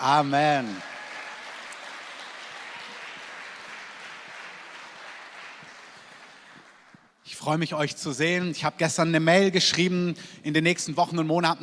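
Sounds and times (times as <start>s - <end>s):
speech: 0.0s - 0.9s, 7.4s - 11.6s
audience applause: 0.0s - 7.1s.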